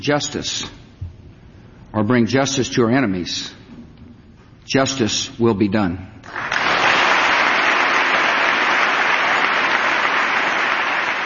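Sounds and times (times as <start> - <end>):
speech: 0.0 - 0.8, 2.0 - 3.6, 4.7 - 6.4
lawmakers applauding: 6.2 - 11.2.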